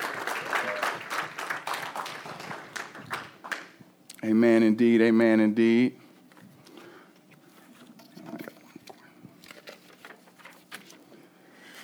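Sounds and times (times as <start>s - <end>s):
crowd clapping: 0.0s - 3.8s
speech: 4.2s - 6.0s.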